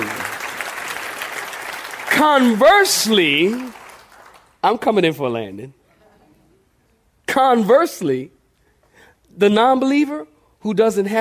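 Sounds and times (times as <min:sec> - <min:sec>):
audience clapping hands: 0:00.0 - 0:04.8
speech: 0:02.2 - 0:03.8, 0:04.6 - 0:05.8, 0:07.4 - 0:08.4, 0:09.3 - 0:11.1.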